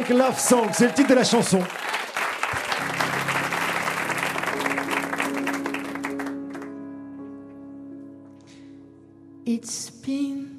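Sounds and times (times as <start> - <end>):
audience applause: 0.0 - 6.8
speech: 0.1 - 2.0, 9.5 - 10.5.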